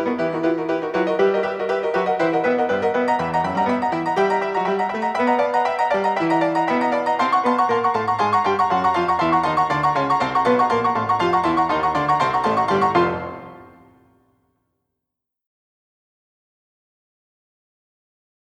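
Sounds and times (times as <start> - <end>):
barroom piano: 0.0 - 14.0.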